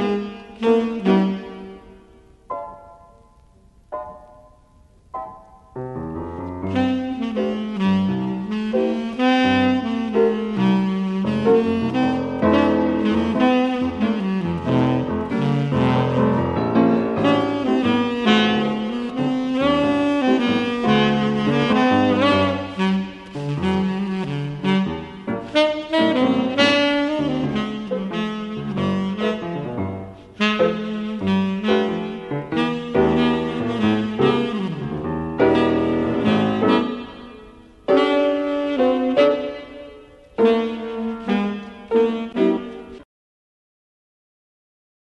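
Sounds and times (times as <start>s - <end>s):
saxophone: 0.0s - 2.2s, 6.2s - 43.0s
piano: 0.0s - 43.1s.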